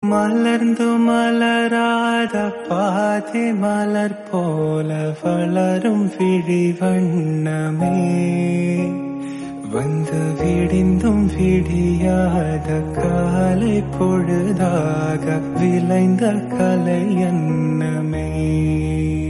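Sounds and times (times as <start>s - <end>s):
Tamil song cover: 0.0s - 19.2s.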